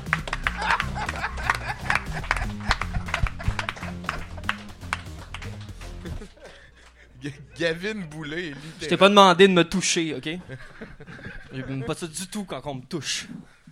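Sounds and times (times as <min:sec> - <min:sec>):
audience applauding warmly: 0:00.0 - 0:07.0
laughter: 0:00.0 - 0:09.0, 0:10.0 - 0:12.3
speech: 0:07.2 - 0:13.5.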